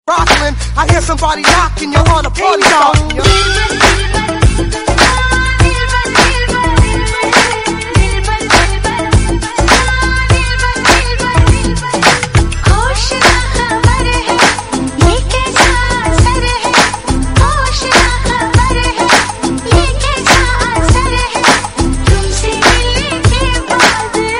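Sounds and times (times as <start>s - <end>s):
remix music: 0.1s - 24.3s.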